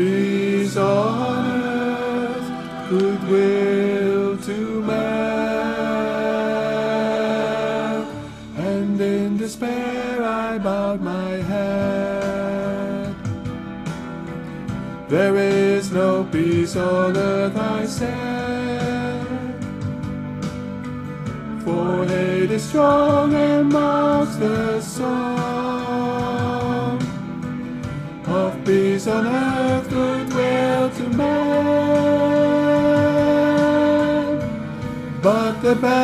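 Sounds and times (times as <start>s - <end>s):
bass part of a song: 0.0s - 36.0s.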